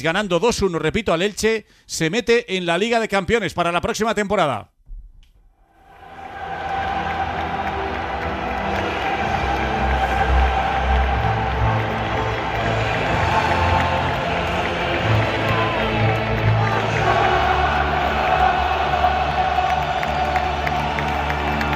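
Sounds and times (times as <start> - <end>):
speech: 0.0 - 4.7
football supporters chanting an anthem at a stadium: 5.8 - 21.7.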